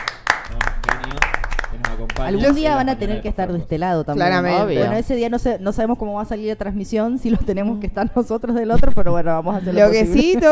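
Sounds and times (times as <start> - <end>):
scattered hand claps from a small group: 0.0 - 2.6
speech: 2.2 - 10.5.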